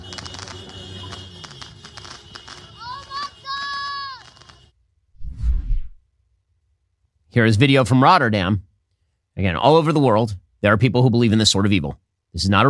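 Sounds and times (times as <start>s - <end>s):
fireworks being fired in the street: 0.0s - 4.7s
speech: 7.3s - 8.7s, 9.4s - 12.6s.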